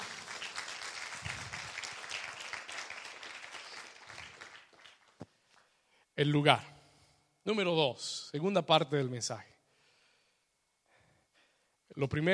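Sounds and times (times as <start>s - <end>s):
audience applauding: 0.0s - 5.3s
speech: 6.2s - 6.7s, 7.4s - 9.5s, 12.0s - 12.3s.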